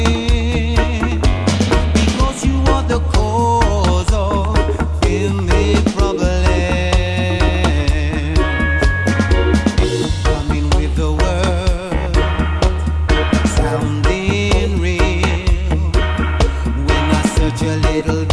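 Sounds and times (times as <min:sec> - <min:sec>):
melodica: 0:00.1 - 0:18.2.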